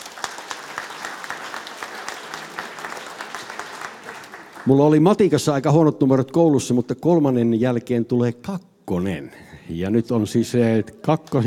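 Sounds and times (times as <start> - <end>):
audience applause: 0.0 - 5.0
speech: 4.6 - 11.4.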